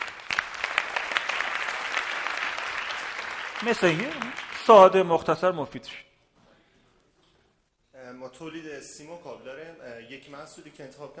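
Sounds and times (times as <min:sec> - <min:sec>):
audience applause: 0:00.0 - 0:05.1
speech: 0:03.6 - 0:06.1, 0:08.2 - 0:11.1.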